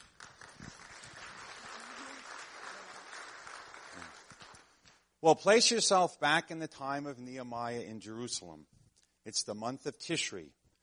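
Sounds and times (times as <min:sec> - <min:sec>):
audience applause: 0:00.0 - 0:04.8
speech: 0:05.2 - 0:10.6.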